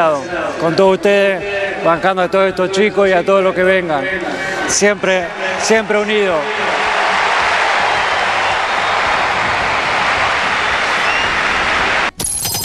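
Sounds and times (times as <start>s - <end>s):
speech: 0.0s - 6.7s
crowd ovation and applause for Messi: 5.2s - 12.2s.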